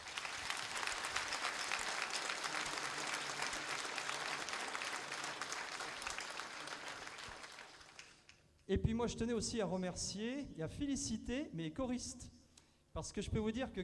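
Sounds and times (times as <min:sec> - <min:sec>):
audience applause: 0:00.0 - 0:08.3
speech: 0:08.7 - 0:12.4, 0:13.0 - 0:13.8.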